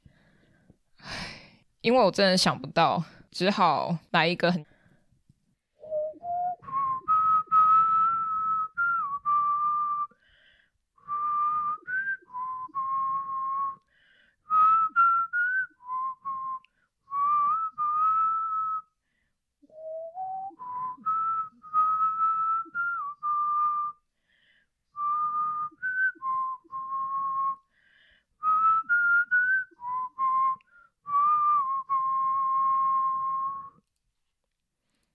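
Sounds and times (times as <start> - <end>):
speech: 1.8 - 4.7
person whistling a song melody: 5.8 - 10.2, 11.0 - 19.0, 19.6 - 24.0, 25.0 - 27.8, 28.4 - 33.9.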